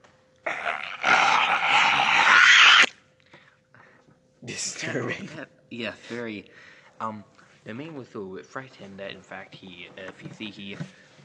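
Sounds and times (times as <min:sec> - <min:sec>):
harsh raspy growling: 0:00.5 - 0:02.9
speech: 0:04.9 - 0:11.0.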